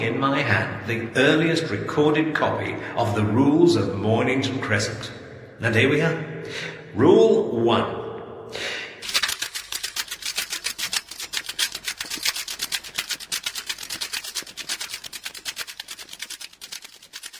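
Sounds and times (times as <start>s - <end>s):
speech: 0.0s - 8.7s
recording tape running off the end of a spinning spool: 9.0s - 17.3s.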